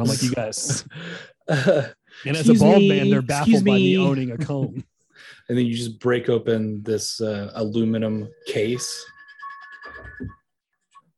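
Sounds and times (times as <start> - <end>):
speech: 0.0 - 9.1, 10.2 - 10.4
phone ringtone: 8.2 - 11.0.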